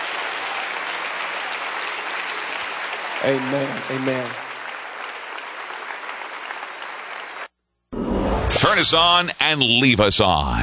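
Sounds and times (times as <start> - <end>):
audience clapping hands: 0.0 - 7.5
speech: 3.2 - 4.5, 8.7 - 10.6.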